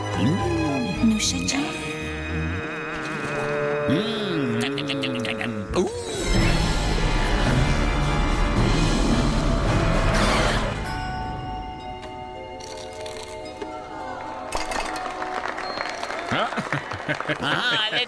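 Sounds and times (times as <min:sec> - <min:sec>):
sustained tonal sounds: 0:00.2 - 0:12.0
laughter: 0:04.4 - 0:05.6, 0:16.2 - 0:18.0
audience applause: 0:14.2 - 0:18.0.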